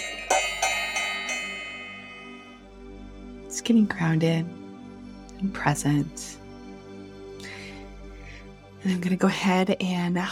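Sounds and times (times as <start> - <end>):
bell ringing: 0.0 - 2.6
speech: 3.7 - 4.6, 5.4 - 6.4, 8.8 - 10.3.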